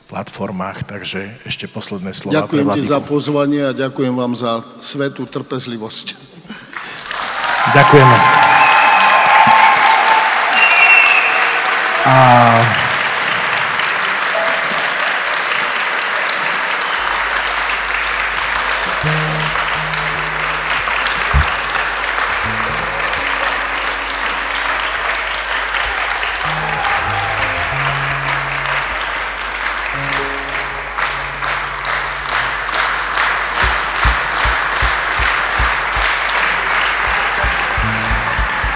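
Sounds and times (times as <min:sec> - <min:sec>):
speech: 0:00.1 - 0:06.4, 0:07.7 - 0:08.6, 0:12.1 - 0:12.8
audience applause for the band: 0:06.7 - 0:38.7
low instrument tones: 0:17.0 - 0:38.7.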